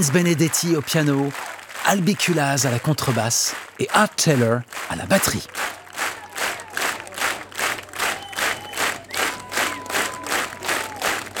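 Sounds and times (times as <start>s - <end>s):
speech: 0.0s - 5.8s
jazz festival audience at Château-Vallon clapping in steady unison: 0.0s - 11.3s
jazz festival audience cheering and shouting: 0.0s - 11.3s.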